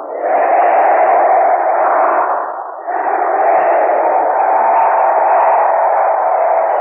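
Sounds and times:
students of the University of Tennessee cheering: 0.3 - 6.8.

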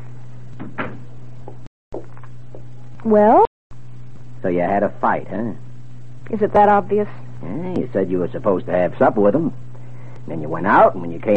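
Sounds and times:
low steady hum: 0.0 - 11.3
door being shut: 0.6 - 1.1
speech: 3.0 - 3.5, 4.4 - 5.6, 6.2 - 9.6, 10.3 - 11.3.

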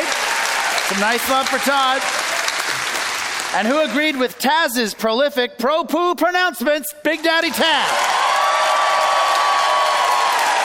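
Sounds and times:
crowd cheering and applauding for the winner of a debate: 0.0 - 4.5, 7.2 - 10.6
speech: 0.9 - 2.2, 3.5 - 8.1.

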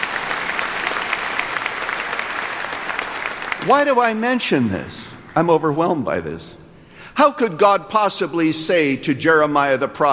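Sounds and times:
audience clapping: 0.0 - 5.5
speech: 3.6 - 6.6, 7.2 - 10.1.

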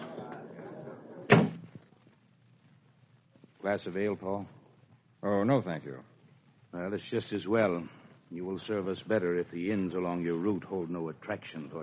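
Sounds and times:
low murmuring voices: 0.0 - 1.4
door pushed shut with a thump and rattle: 1.3 - 1.8
speech: 3.6 - 4.6, 5.2 - 6.1, 6.7 - 11.8.

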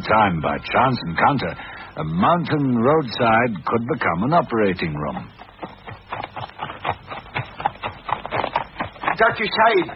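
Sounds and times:
speech: 0.0 - 5.4, 9.2 - 9.9
horses pulling a carriage, hooves clip-clopping: 4.0 - 9.9.

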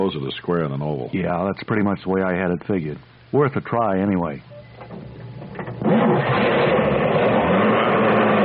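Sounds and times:
speech: 0.1 - 5.1
car engine cranking, starting and idling: 4.9 - 8.4.

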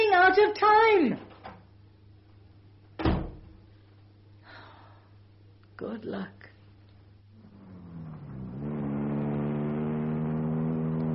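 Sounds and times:
speech: 0.4 - 1.3, 5.8 - 6.4
car driving off at high speed: 7.4 - 11.1.

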